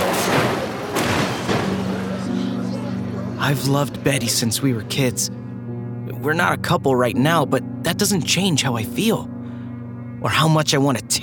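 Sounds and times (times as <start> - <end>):
car crashing off a cliff: 0.0 - 3.0
speech: 3.4 - 5.4, 6.2 - 9.4, 10.2 - 11.2.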